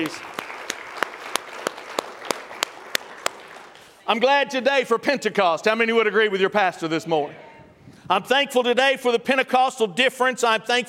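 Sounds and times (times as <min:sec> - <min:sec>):
speech: 0:00.0 - 0:00.4, 0:04.1 - 0:07.4, 0:08.1 - 0:10.8
audience hand clapping: 0:00.0 - 0:04.1.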